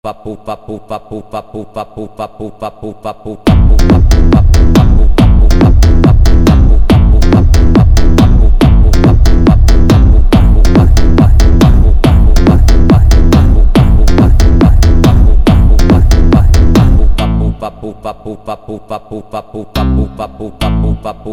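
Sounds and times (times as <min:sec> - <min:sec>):
automotivo beat: 0:03.5 - 0:18.0, 0:19.8 - 0:21.3.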